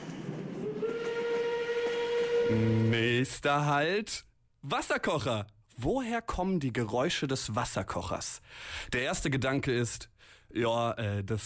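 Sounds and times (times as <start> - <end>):
train arriving with a low rumble: 0.0 - 2.9
steam whistle: 0.5 - 3.2
speech: 2.5 - 11.4.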